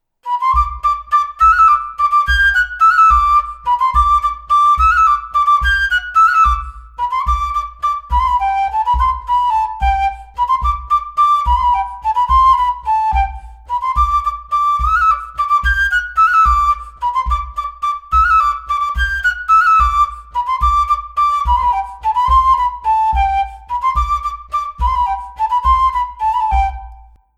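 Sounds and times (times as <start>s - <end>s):
folk dance tune from Auvergne: 0.3s - 27.2s.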